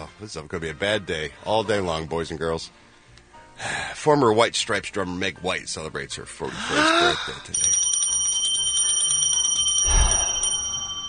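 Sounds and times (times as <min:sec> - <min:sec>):
speech: 0:00.2 - 0:02.9, 0:03.6 - 0:07.8
bell ringing: 0:07.5 - 0:11.0.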